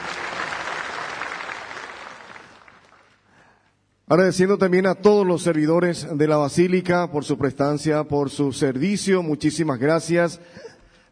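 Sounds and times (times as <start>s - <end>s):
applause: 0.0s - 3.3s
speech: 4.1s - 10.7s.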